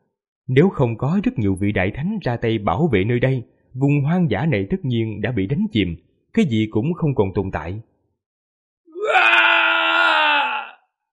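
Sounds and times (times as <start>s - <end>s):
speech: 0.5s - 7.9s
loud anguished scream: 8.9s - 11.0s.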